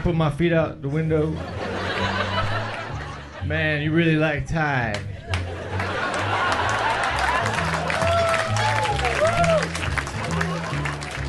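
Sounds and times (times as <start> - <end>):
speech: 0.0 - 1.6, 3.4 - 5.3
audience laughing and clapping: 1.2 - 3.5, 4.9 - 11.2.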